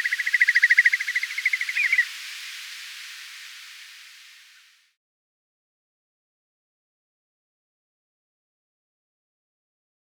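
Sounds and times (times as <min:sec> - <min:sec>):
whimbrel call: 0:00.0 - 0:02.2.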